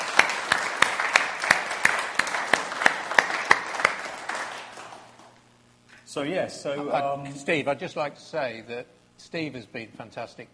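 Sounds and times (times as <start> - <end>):
audience applause: 0.0 - 5.4
speech: 6.1 - 10.5.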